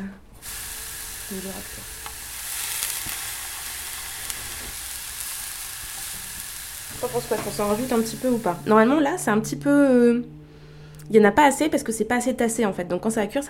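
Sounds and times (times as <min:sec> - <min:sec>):
aubergine sizzling in a frying pan: 0:00.4 - 0:09.0
speech: 0:01.3 - 0:02.0, 0:07.0 - 0:10.4, 0:11.1 - 0:13.4.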